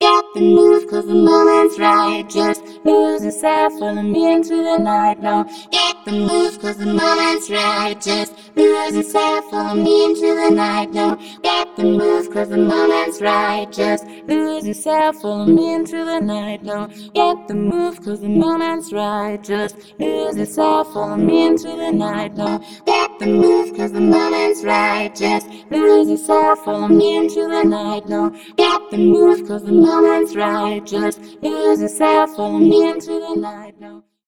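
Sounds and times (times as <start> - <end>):
Orange Vocoder synth presets: 0.0 - 34.0.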